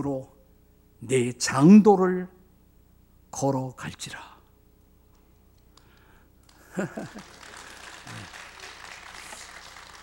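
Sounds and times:
speech: 0.0s - 0.4s, 1.0s - 2.4s, 3.3s - 4.3s, 6.8s - 7.4s
audience clapping: 5.8s - 10.0s
laughter: 6.6s - 8.6s.

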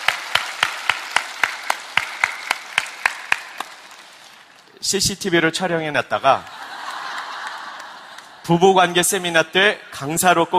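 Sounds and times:
audience applause: 0.0s - 4.7s, 6.5s - 8.5s
speech: 4.8s - 6.6s, 8.5s - 10.5s
laughter: 6.4s - 9.1s.

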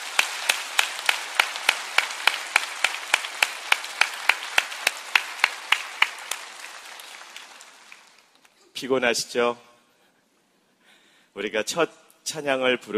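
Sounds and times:
audience applause: 0.0s - 8.6s
speech: 8.8s - 9.7s, 11.4s - 12.9s.

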